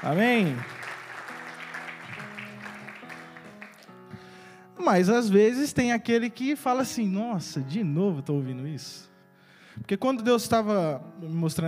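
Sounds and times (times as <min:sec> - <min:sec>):
speech: 0:00.0 - 0:00.8, 0:04.8 - 0:09.1, 0:09.8 - 0:11.6
audience applause: 0:00.0 - 0:04.1
sustained keyboard chords: 0:00.0 - 0:11.6.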